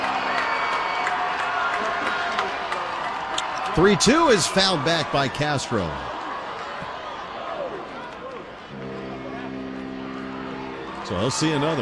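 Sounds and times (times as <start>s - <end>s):
ballpark crowd cheering: 0.0s - 11.8s
speech: 3.8s - 6.1s, 11.1s - 11.8s.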